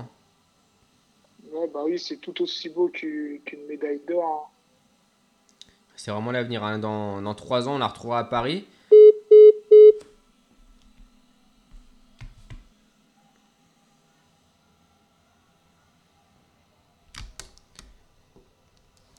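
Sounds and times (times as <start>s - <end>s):
speech: 1.6s - 4.6s, 6.0s - 8.8s
telephone keypad tones: 8.9s - 10.0s.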